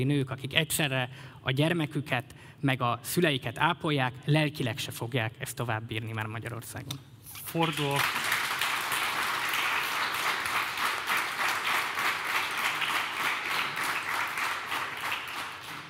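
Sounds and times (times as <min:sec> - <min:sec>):
speech: 0:00.0 - 0:08.3
audience applause: 0:07.7 - 0:15.8.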